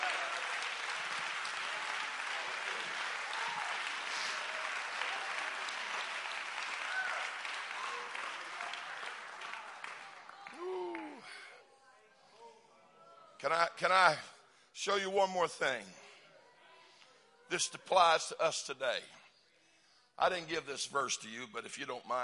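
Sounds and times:
large group clapping hands: 0.0s - 11.5s
speech: 13.4s - 16.0s, 17.5s - 19.2s, 20.2s - 22.2s.

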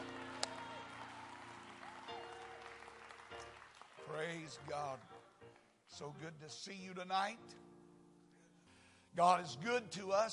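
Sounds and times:
people clapping: 0.0s - 5.8s
speech: 4.1s - 5.1s, 5.9s - 7.6s, 9.2s - 10.3s.

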